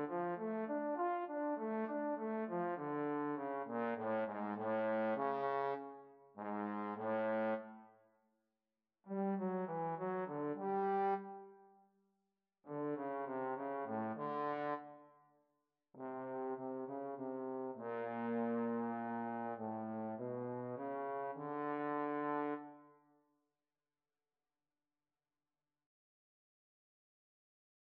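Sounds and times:
trumpet and trombone duet: 0:00.0 - 0:05.8, 0:06.4 - 0:07.7, 0:09.2 - 0:11.3, 0:12.7 - 0:14.8, 0:16.0 - 0:22.6.

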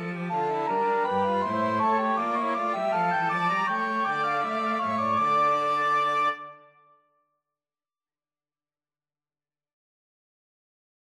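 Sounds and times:
bourree by a flexible mixed ensemble of six players: 0:00.2 - 0:06.5.

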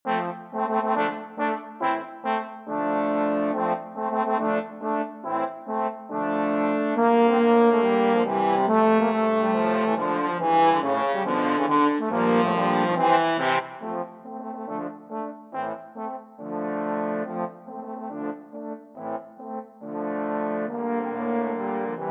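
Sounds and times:
trombone quartet: 0:00.1 - 0:22.1.

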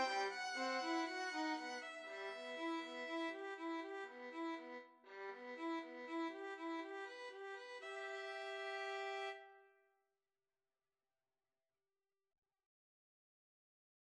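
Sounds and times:
cello: 0:00.0 - 0:09.5
two violins: 0:00.0 - 0:09.6.

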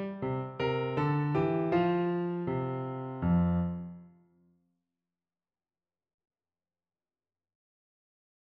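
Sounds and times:
piano piece: 0:00.0 - 0:04.3.

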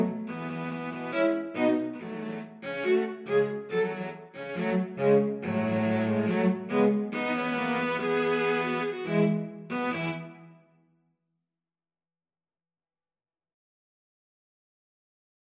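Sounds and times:
cello trio playing habanera: 0:00.0 - 0:10.3.

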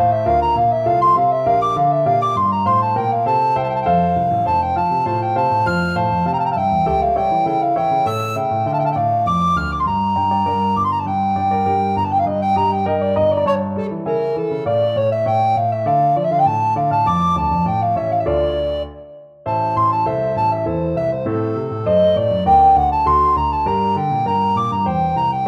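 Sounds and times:
alto recorder piece: 0:00.0 - 0:25.4.

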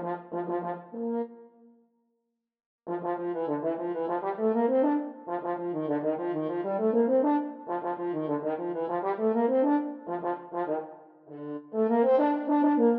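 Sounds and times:
French horn duet: 0:00.0 - 0:01.3, 0:02.9 - 0:12.9.

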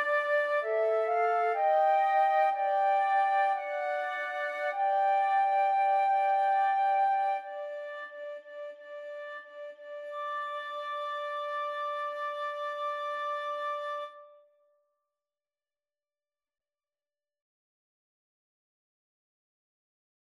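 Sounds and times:
flute trio playing: 0:00.0 - 0:14.3.

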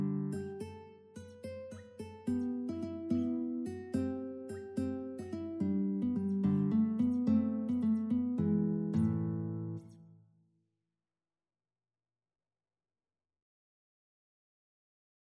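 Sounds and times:
guitar duet: 0:00.0 - 0:10.2.

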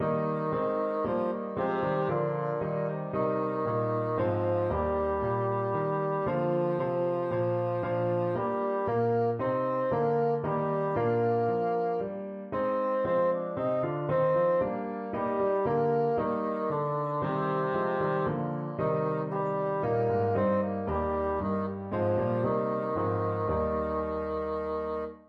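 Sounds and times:
bassoon: 0:00.0 - 0:25.2.

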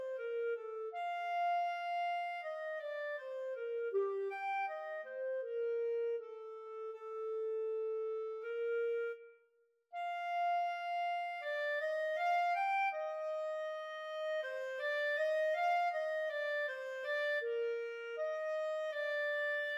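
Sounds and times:
clarinet in a duet: 0:00.0 - 0:19.7.

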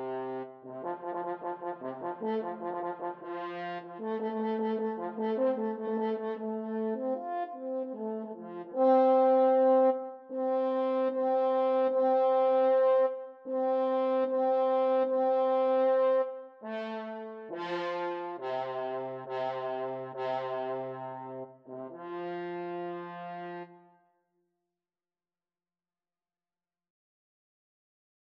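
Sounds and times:
french horn bugle call: 0:00.0 - 0:23.8.

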